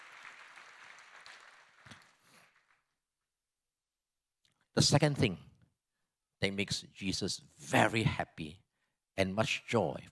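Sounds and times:
crowd applause: 0:00.0 - 0:02.8
speech: 0:04.8 - 0:05.5, 0:06.4 - 0:08.6, 0:09.2 - 0:10.1.

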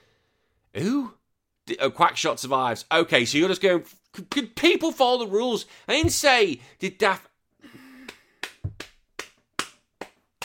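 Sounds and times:
speech: 0:00.8 - 0:07.3
hand clapping: 0:08.0 - 0:10.4.

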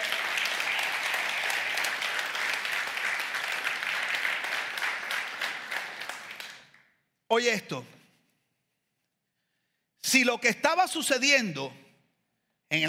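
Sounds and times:
audience applause: 0:00.0 - 0:06.8
speech: 0:07.3 - 0:08.0, 0:10.1 - 0:11.8.

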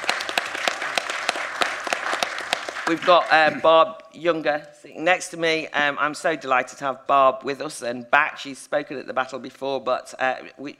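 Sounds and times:
audience applause welcoming a speaker at a talk: 0:00.0 - 0:03.8
speech: 0:02.9 - 0:10.7.

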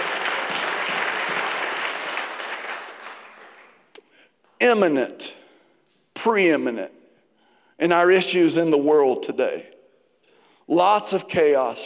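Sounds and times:
audience clapping: 0:00.0 - 0:04.0
speech: 0:04.6 - 0:05.4, 0:06.2 - 0:07.0, 0:07.8 - 0:09.7, 0:10.7 - 0:11.8.

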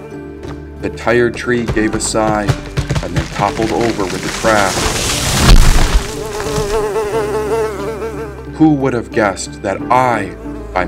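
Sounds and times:
speech: 0:00.8 - 0:05.0, 0:08.6 - 0:10.8
fly buzzing: 0:03.5 - 0:08.6, 0:10.0 - 0:10.8.

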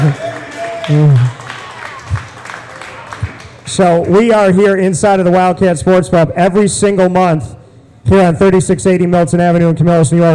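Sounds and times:
audience clapping: 0:00.0 - 0:04.6
speech: 0:00.9 - 0:01.4, 0:03.8 - 0:10.3.

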